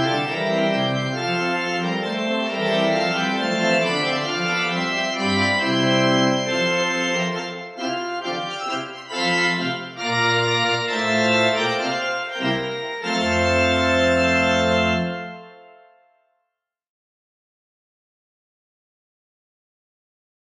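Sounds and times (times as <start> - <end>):
church organ: 0.0 - 16.2.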